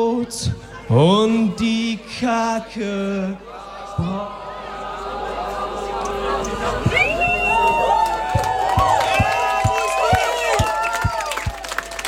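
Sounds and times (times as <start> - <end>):
speech: 0.0 - 4.5
crowd clapping and cheering: 4.0 - 12.0
whoops and shouts: 6.9 - 11.6.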